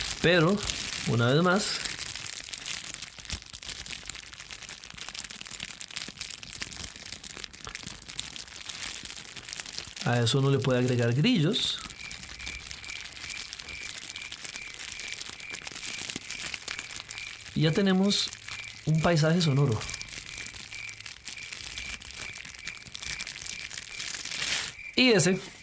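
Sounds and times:
plastic bag crumpled to imitate crackling fire: 0.0 - 25.6
speech: 0.2 - 2.0, 10.1 - 11.9, 17.6 - 20.0, 25.0 - 25.6
faint high whistle-like tone: 11.7 - 17.9, 18.5 - 25.6.

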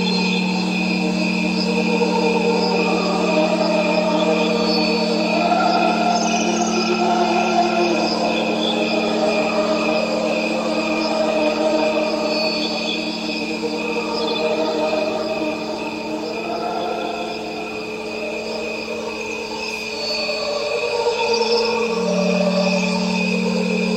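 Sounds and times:
crickets chirping: 0.0 - 23.9
tuning forks ringing: 21.4 - 23.9.

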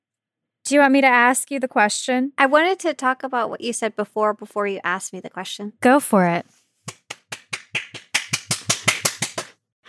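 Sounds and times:
speech: 0.7 - 6.6
hand clapping: 6.9 - 9.6.

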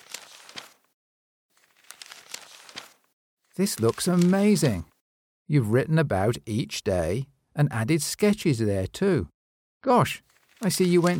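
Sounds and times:
paper journal pages rustling and crinkling: 0.0 - 4.8, 10.3 - 11.1
speech: 3.6 - 4.9, 5.5 - 11.1.

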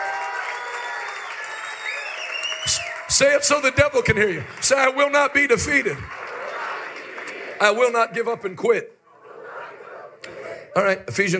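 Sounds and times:
audience clapping and cheering: 0.0 - 8.3
speech: 2.7 - 6.2, 7.6 - 9.0, 10.8 - 11.3.

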